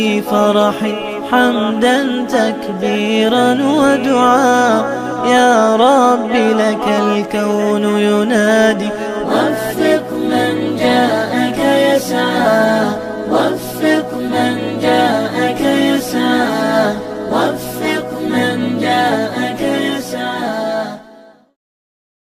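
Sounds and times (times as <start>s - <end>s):
Arabic nasheed singing: 0.0s - 21.4s.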